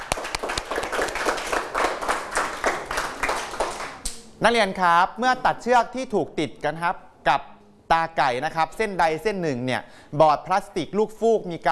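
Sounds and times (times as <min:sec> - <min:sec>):
students clapping: 0:00.0 - 0:04.3
speech: 0:04.4 - 0:11.7.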